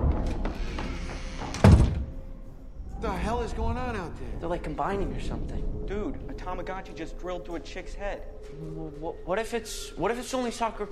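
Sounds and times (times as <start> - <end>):
garage door thudding shut: 0.0 - 2.2
speech: 3.3 - 10.9.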